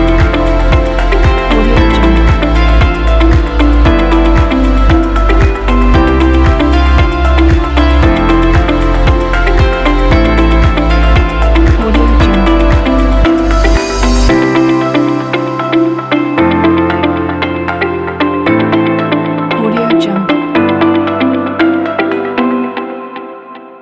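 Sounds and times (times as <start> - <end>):
upbeat and inspiring corporate music: 0.0 - 23.6.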